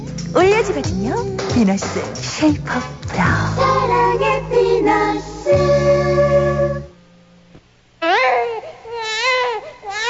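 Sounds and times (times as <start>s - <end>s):
speech: 0.4s - 6.8s
newborn baby crying: 8.0s - 10.0s.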